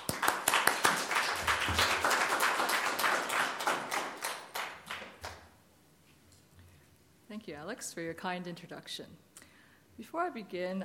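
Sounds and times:
lecture audience applause welcoming a speaker: 0:00.0 - 0:05.4
speech: 0:07.7 - 0:09.3, 0:10.0 - 0:10.8.

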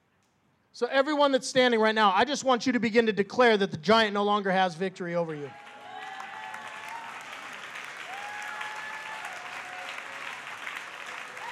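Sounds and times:
speech: 0:00.8 - 0:05.6
audience clapping: 0:05.5 - 0:11.5.

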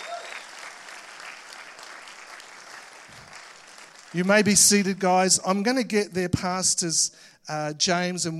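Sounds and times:
church congregation clapping for visiting guests: 0:00.0 - 0:05.0
speech: 0:04.1 - 0:08.3.

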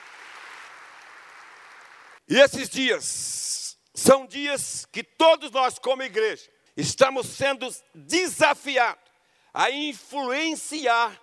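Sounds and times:
audience applause: 0:00.0 - 0:02.2
speech: 0:02.3 - 0:11.2.

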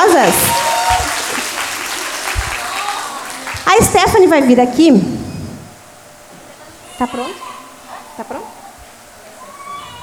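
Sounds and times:
audience applause: 0:00.0 - 0:03.9
speech: 0:00.2 - 0:00.6, 0:03.8 - 0:05.3, 0:07.0 - 0:07.5, 0:08.2 - 0:08.6.

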